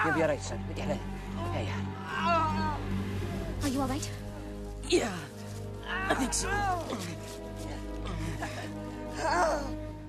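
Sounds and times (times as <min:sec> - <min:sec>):
speech: 0:00.0 - 0:03.0, 0:03.6 - 0:04.2, 0:04.8 - 0:09.8
person crying out in pain: 0:05.8 - 0:07.2, 0:09.2 - 0:09.8.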